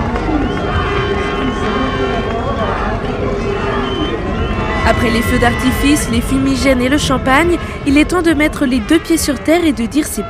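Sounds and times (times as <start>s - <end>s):
packed crowd lining the Port Olonna channel at Les Sables d'Olonne cheering: 0.0s - 10.2s
speech: 4.9s - 10.2s.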